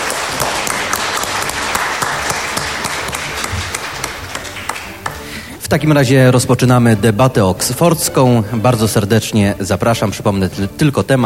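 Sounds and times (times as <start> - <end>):
audience applause for the speakers: 0.0 - 5.4
speech: 5.7 - 11.2.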